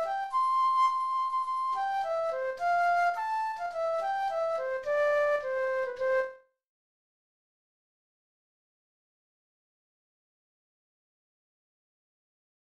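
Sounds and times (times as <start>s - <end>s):
flute at 106 bpm: 0.0s - 6.6s.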